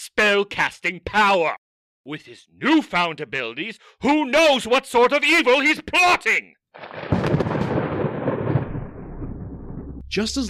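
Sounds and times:
speech: 0.1s - 7.7s, 10.1s - 10.4s
sharp clap of thunder: 6.8s - 10.0s.

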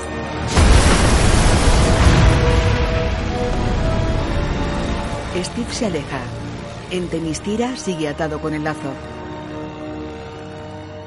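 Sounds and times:
glass-roofed factory exploding after a grenade lands beside bombs: 0.4s - 5.7s
speech: 5.6s - 9.2s.

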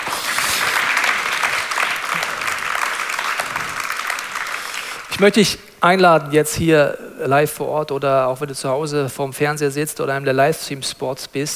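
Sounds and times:
applause: 0.0s - 5.2s
speech: 5.2s - 11.5s.

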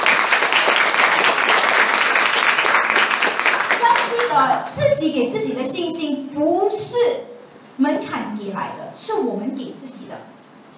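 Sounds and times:
large crowd applauding: 0.0s - 4.6s
speech: 4.4s - 10.3s.

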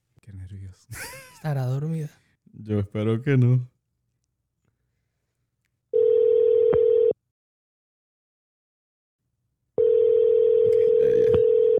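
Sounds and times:
speech: 0.5s - 3.7s
ringback tone of an outgoing telephone call: 6.0s - 7.2s, 9.8s - 11.7s.

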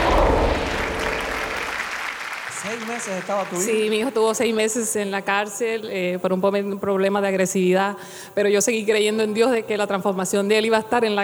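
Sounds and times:
audience applause: 0.0s - 4.1s
speech: 2.7s - 11.2s.

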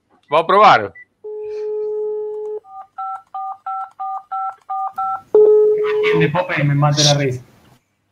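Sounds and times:
speech: 0.3s - 1.0s, 6.2s - 7.5s
telephone keypad dialing tones: 2.2s - 5.7s.

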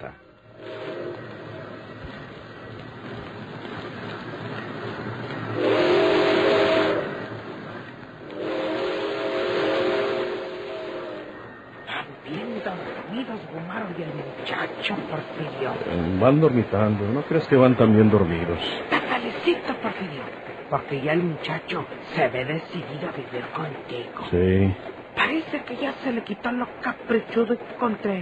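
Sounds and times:
speech: 0.0s - 0.3s, 16.2s - 18.9s, 20.7s - 28.2s
steady rumbling hiss: 0.0s - 28.2s
freight train whistle blasts: 0.6s - 1.2s, 5.6s - 7.2s, 8.3s - 11.5s.

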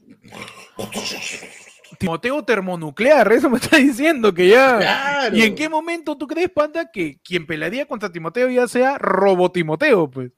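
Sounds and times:
voice imitating snoring: 0.2s - 2.0s
speech: 0.8s - 10.3s.

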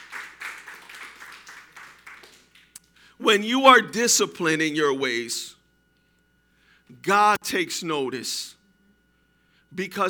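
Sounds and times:
audience applause: 0.0s - 2.8s
speech: 3.2s - 5.6s, 7.1s - 8.6s, 9.8s - 10.0s.

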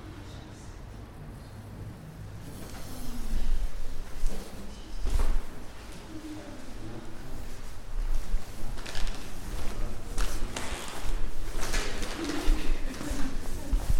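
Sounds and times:
murmur of voices in Prague: 0.0s - 13.9s.

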